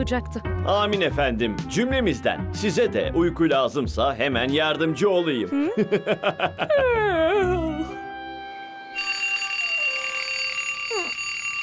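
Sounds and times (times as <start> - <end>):
speech: 0.0 - 7.7
laughter: 5.6 - 7.8
alarm clock ringing: 9.0 - 11.6.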